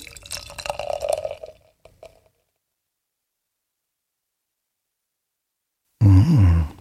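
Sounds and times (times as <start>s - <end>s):
beer pouring into glass: 0.0s - 2.4s
low vocal hum: 6.0s - 6.7s.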